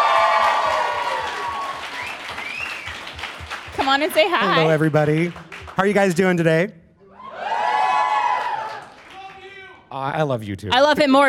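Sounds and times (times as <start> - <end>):
people cheering: 0.0 - 5.9, 7.1 - 9.8
crowd applause: 0.0 - 6.3, 7.3 - 9.6
speech: 3.9 - 6.8, 10.0 - 11.2.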